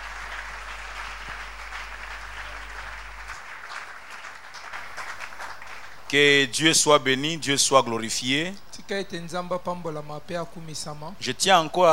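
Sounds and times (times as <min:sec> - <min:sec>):
congregation applauding in church: 0:00.0 - 0:06.6
low steady hum: 0:00.0 - 0:11.9
speech: 0:06.1 - 0:11.9.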